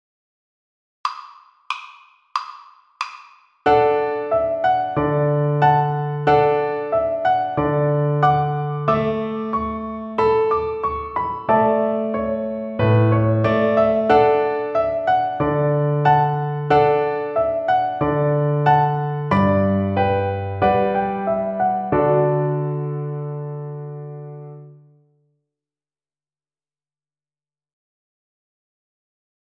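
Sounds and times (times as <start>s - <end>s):
piano accompaniment: 3.7s - 25.0s.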